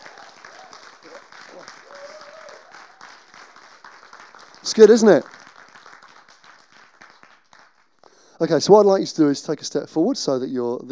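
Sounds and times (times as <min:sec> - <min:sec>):
audience applause: 0:00.0 - 0:08.3
speech: 0:01.0 - 0:02.1, 0:04.6 - 0:05.4, 0:08.4 - 0:10.9.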